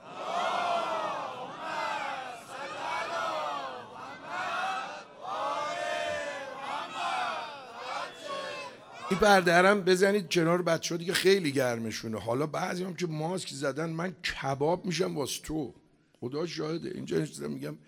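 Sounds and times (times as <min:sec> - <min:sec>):
large crowd chanting salawat in unison: 0:00.0 - 0:09.2
speech: 0:09.1 - 0:17.8.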